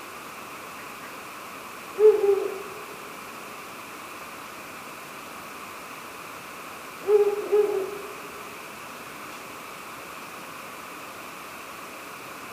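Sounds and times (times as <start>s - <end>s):
faint hiss: 0.0s - 12.5s
Ural owl hooting: 2.0s - 3.1s, 7.0s - 8.5s.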